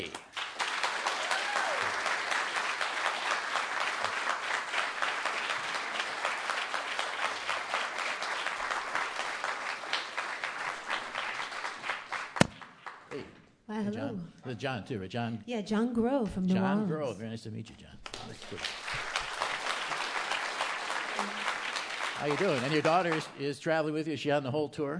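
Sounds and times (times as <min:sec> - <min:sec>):
audience applause welcoming a singer to the stage at a concert: 0:00.0 - 0:12.5, 0:18.0 - 0:23.4
speech: 0:14.5 - 0:18.8, 0:22.2 - 0:24.9.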